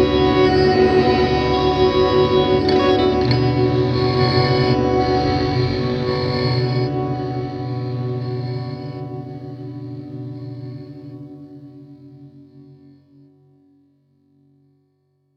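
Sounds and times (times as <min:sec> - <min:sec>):
slide guitar: 0:00.0 - 0:12.4.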